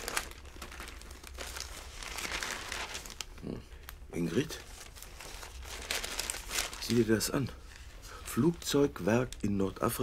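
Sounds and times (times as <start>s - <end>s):
newspaper pages rustling and crinkling: 0.0s - 3.6s, 4.2s - 10.0s
speech: 4.2s - 4.7s, 6.9s - 7.6s, 8.4s - 10.0s.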